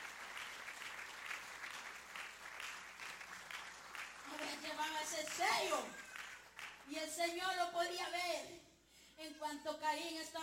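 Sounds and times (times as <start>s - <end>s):
crowd applause: 0.0s - 6.8s
speech: 4.8s - 6.0s, 6.9s - 10.4s.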